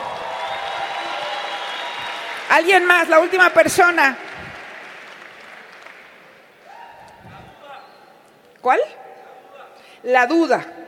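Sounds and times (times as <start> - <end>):
loud applause: 0.0 - 7.5
speech: 2.5 - 4.2, 8.6 - 9.0, 10.0 - 10.8.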